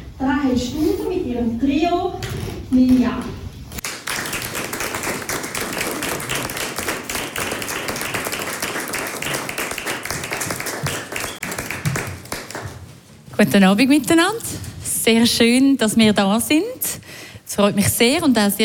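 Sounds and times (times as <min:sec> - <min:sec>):
speech: 0:00.2 - 0:03.4, 0:13.4 - 0:17.0, 0:17.6 - 0:18.6
concert audience applause: 0:03.8 - 0:12.7.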